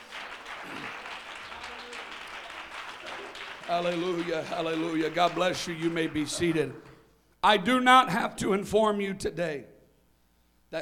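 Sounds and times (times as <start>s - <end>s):
audience clapping hands: 0.0s - 7.1s
speech: 3.7s - 9.7s.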